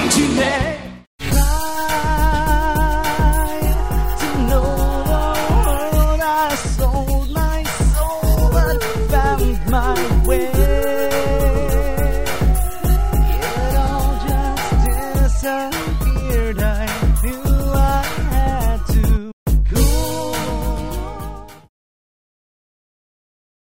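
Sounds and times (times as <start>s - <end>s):
songs in American English: 0.2s - 21.7s
laughter: 3.0s - 6.5s, 8.0s - 18.0s.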